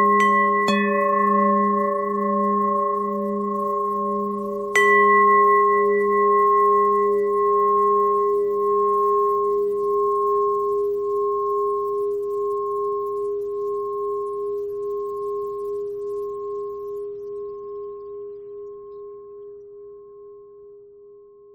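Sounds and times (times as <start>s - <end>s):
bell: 0.0s - 16.9s.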